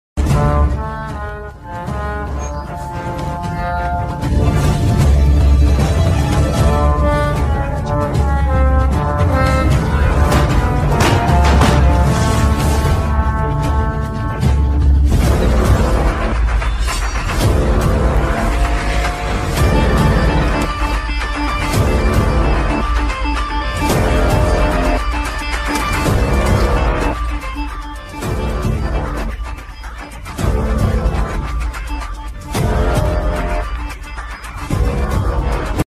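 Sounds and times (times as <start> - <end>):
background music ringtone: 0.2 - 35.8.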